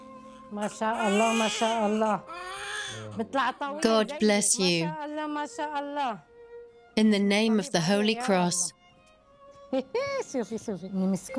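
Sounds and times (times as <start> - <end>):
newborn baby crying: 0.1 - 3.4
speech: 0.5 - 6.3, 7.0 - 8.8, 9.7 - 11.3.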